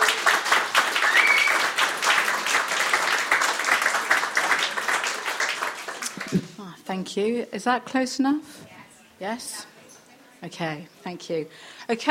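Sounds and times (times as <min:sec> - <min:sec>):
audience applause: 0:00.0 - 0:06.6
speech: 0:07.0 - 0:08.6, 0:09.2 - 0:09.7, 0:10.4 - 0:12.0.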